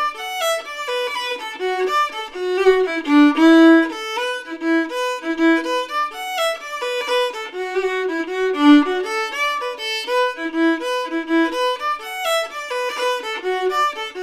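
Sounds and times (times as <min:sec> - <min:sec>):
fiddle playing a jig: 0:00.0 - 0:14.2.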